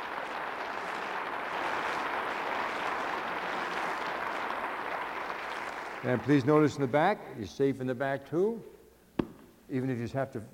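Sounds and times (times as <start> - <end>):
audience applause: 0.0 - 7.0
speech: 6.0 - 8.7, 9.7 - 10.5.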